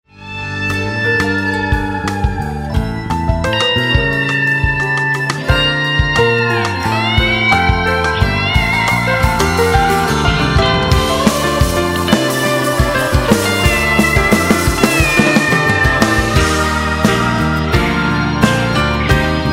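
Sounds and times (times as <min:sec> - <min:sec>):
instrumental ringtone: 0:00.2 - 0:19.4.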